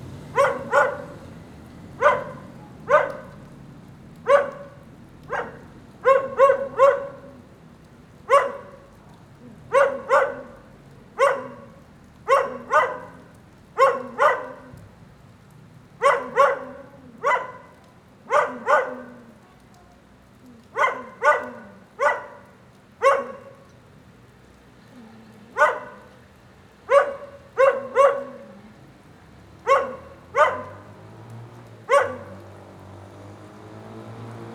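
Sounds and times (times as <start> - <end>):
steady rain: 0.0 - 34.5
dog barking: 0.3 - 1.3, 2.0 - 3.5, 4.2 - 7.4, 8.2 - 8.9, 9.6 - 14.8, 16.0 - 19.4, 20.6 - 23.7, 25.5 - 26.2, 26.9 - 28.7, 29.6 - 31.0, 31.8 - 32.5.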